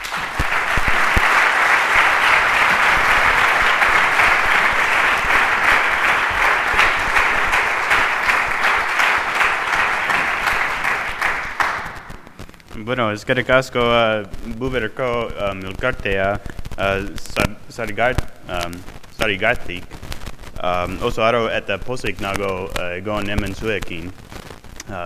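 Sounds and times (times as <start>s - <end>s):
audience applause: 0.0s - 12.4s
speech: 12.9s - 20.0s, 20.6s - 24.2s, 24.9s - 25.0s.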